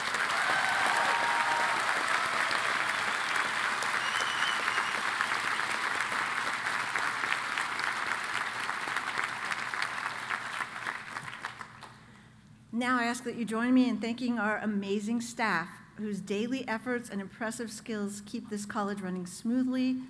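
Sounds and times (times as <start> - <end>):
audience round of applause: 0.0 - 12.0
speech: 12.8 - 20.0.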